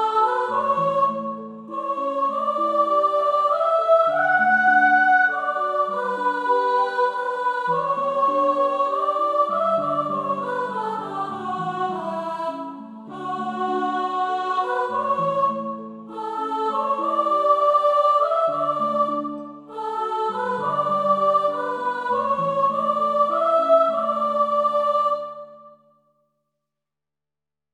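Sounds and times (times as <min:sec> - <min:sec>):
soprano singing: 0:00.0 - 0:25.8.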